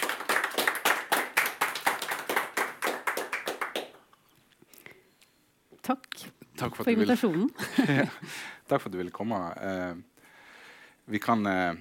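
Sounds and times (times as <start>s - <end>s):
audience applause: 0.0s - 4.0s
speech: 5.9s - 10.1s, 11.1s - 11.8s
laughter: 7.6s - 8.4s.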